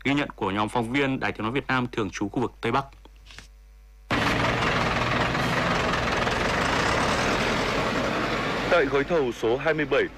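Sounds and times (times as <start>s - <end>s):
speech: 0.0s - 3.4s, 8.8s - 10.1s
excavators and bulldozers roaring at construction site: 4.1s - 10.1s.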